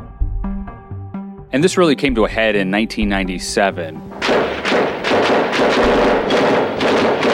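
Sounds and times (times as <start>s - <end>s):
speech: 1.5s - 4.8s
automatic weapons fire from AK-47 rifles in the North Hollywood shootout: 4.1s - 7.3s.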